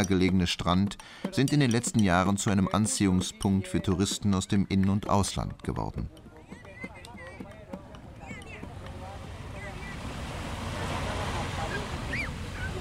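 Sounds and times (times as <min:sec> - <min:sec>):
speech: 0:00.0 - 0:06.2
people's voices: 0:01.4 - 0:12.7
gentle sea waves lapping against a beach promenade in Santa Marta: 0:06.1 - 0:12.7.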